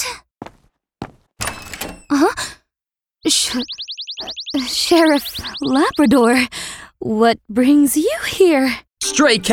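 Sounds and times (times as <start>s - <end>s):
dull thuds against a door: 1.4s - 2.3s
speech: 3.2s - 9.5s
high chirps: 3.6s - 6.2s.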